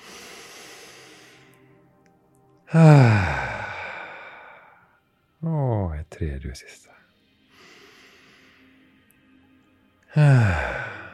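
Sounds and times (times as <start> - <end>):
deep breath during a guided breathing exercise: 0.0 - 1.6, 2.7 - 5.0, 7.5 - 8.8, 10.2 - 11.1
speech: 2.7 - 3.3, 6.2 - 7.0.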